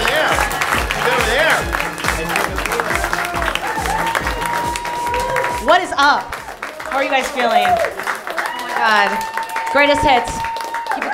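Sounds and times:
scattered cheers: 0.0s - 5.8s, 6.6s - 11.1s
thumping bass beat: 0.0s - 6.6s
live audience applauding: 0.0s - 11.1s
speech: 7.0s - 8.0s, 8.8s - 10.5s.

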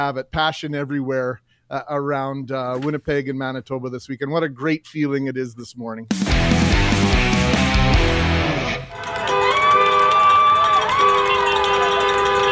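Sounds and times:
speech: 0.0s - 8.3s
big crowd cheering and roaring outdoors outside arena at night: 6.6s - 12.5s
horn-like tones: 8.7s - 12.5s.

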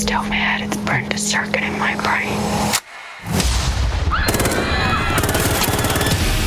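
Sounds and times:
speech: 0.1s - 2.7s
heavy boom: 3.2s - 4.2s
automatic gunfire in a film trailer: 4.3s - 6.4s.

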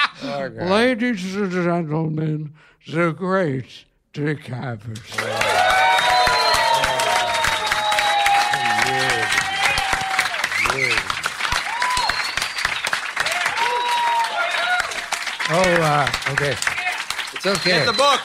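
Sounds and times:
speech: 0.2s - 5.8s, 15.5s - 16.8s, 17.4s - 18.2s
audience applause: 5.1s - 18.2s
whoops and high cheering voices: 5.2s - 12.6s, 13.2s - 15.1s.

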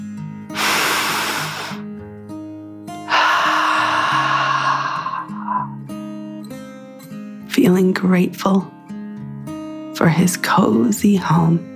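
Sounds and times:
deep breath in and out: 0.6s - 1.9s, 3.0s - 6.0s
speech: 7.6s - 8.8s, 10.0s - 11.7s.

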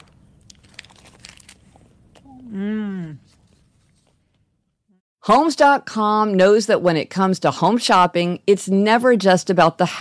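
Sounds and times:
person biting into a snack bar: 0.0s - 2.4s
speech: 5.3s - 10.0s.

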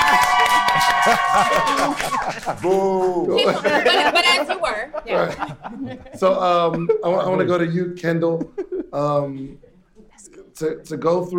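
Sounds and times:
audience clapping: 0.0s - 4.4s
crowd voices and cheering: 0.0s - 5.6s
laughter: 0.0s - 7.6s, 8.2s - 9.3s
speech: 1.1s - 9.6s, 10.6s - 11.3s.

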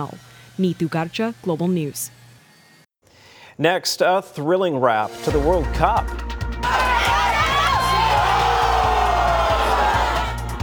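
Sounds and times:
speech: 0.0s - 2.2s, 3.6s - 6.8s
crowd cheering during football final: 6.6s - 10.6s.

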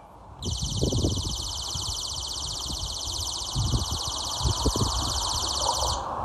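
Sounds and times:
neighbor's noise alarm triggered by kids: 0.4s - 6.1s.

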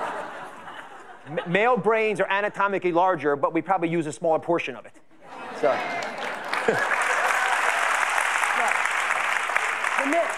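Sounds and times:
speech: 1.3s - 5.0s, 5.6s - 6.0s, 6.6s - 6.9s
crowd applause: 5.6s - 10.3s.

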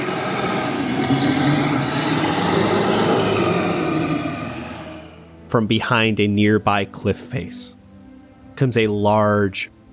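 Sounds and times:
loud guttural monster growl: 0.0s - 5.3s
speech: 5.5s - 7.8s, 8.6s - 9.9s.

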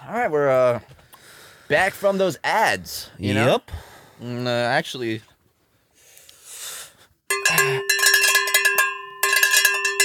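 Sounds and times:
speech: 0.1s - 1.0s, 1.7s - 5.3s
handheld beer bell ringing: 7.3s - 10.0s.

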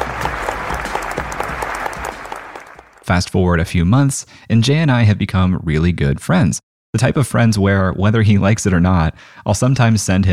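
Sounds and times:
audience applause welcoming a speaker to the stage: 0.0s - 3.0s
speech: 3.1s - 10.3s.

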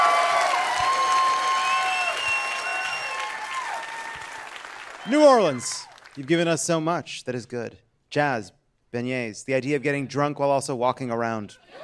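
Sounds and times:
live audience in New Orleans applauding a guest: 0.0s - 6.6s
speech: 5.1s - 11.8s.

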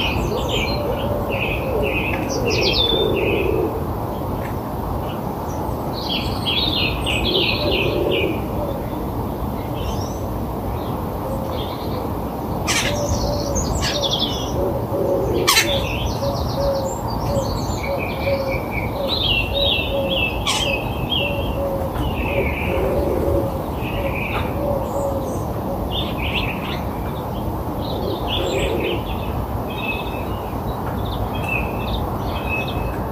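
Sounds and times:
soft low bird cooing: 0.0s - 3.9s, 7.2s - 9.0s, 12.7s - 26.9s, 27.7s - 29.1s
birds chirping and trilling: 0.0s - 4.4s, 5.0s - 33.0s.

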